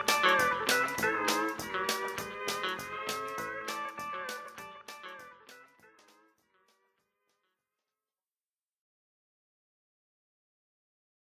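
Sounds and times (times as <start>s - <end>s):
gun shop music: 0.0s - 7.6s.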